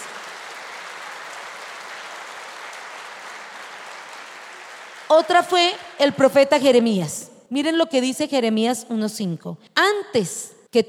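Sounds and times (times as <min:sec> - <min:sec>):
audience applauding: 0:00.0 - 0:05.8
speech: 0:05.1 - 0:10.8.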